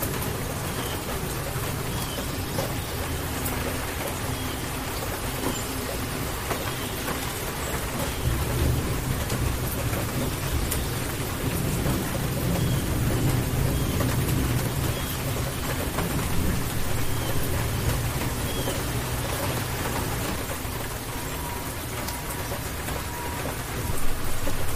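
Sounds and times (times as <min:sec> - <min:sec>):
rainstorm: 0:00.0 - 0:24.7.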